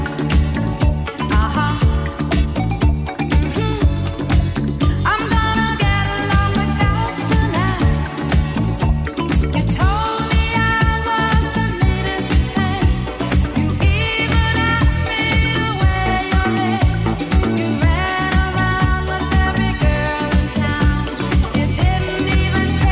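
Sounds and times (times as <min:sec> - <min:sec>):
70s Redrum drum machine beat at 120 bpm: 0:00.0 - 0:22.9.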